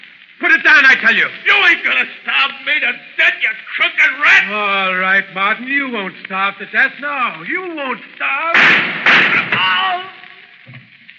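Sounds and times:
speech: 0:00.5 - 0:09.8
gunshot in a standoff on an island: 0:08.5 - 0:09.9.

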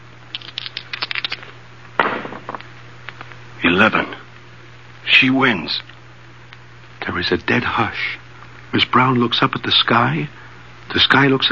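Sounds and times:
low steady hum: 0:00.0 - 0:11.5
dice rattling: 0:00.3 - 0:01.4
speech: 0:03.7 - 0:04.2, 0:05.2 - 0:05.9, 0:07.1 - 0:11.5.

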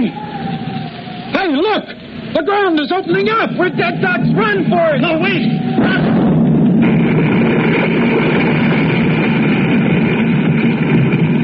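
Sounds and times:
speech: 0:01.7 - 0:06.3
explosions: 0:05.4 - 0:11.4.

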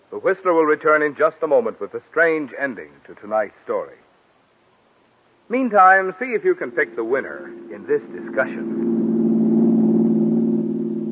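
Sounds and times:
speech: 0:00.1 - 0:04.1, 0:05.5 - 0:08.8
old car's engine running smoothly: 0:06.5 - 0:11.1.

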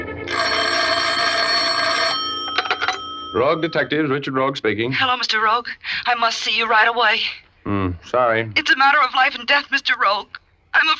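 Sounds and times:
telephone ringing: 0:00.0 - 0:04.3
speech: 0:03.3 - 0:10.9.

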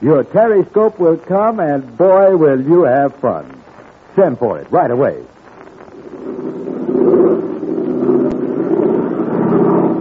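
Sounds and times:
speech: 0:00.0 - 0:03.6, 0:04.2 - 0:05.4
airplane engine flying overhead: 0:05.2 - 0:10.0.

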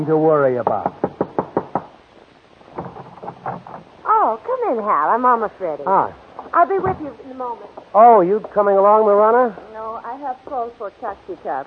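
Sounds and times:
speech: 0:00.0 - 0:01.0, 0:04.2 - 0:11.6
knocking on a door: 0:00.6 - 0:02.0, 0:02.7 - 0:03.9.

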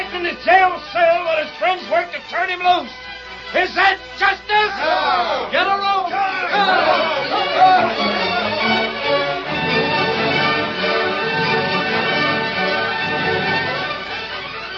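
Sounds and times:
speech: 0:00.3 - 0:08.2
angry crowd murmuring: 0:04.6 - 0:14.7.

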